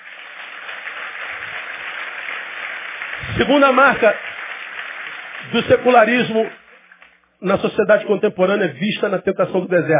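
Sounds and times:
audience applause: 0:00.0 - 0:07.2
speech: 0:03.4 - 0:04.3, 0:05.5 - 0:06.6, 0:07.4 - 0:09.9.

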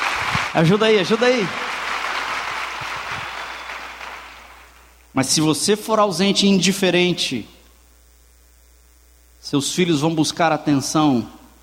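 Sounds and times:
audience applause: 0:00.0 - 0:04.9
speech: 0:00.6 - 0:01.7, 0:05.2 - 0:07.6, 0:09.5 - 0:11.4.

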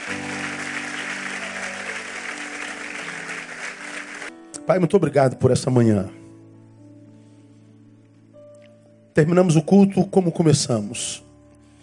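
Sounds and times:
audience applauding: 0:00.0 - 0:04.3
speech: 0:04.7 - 0:06.2, 0:09.2 - 0:11.3.

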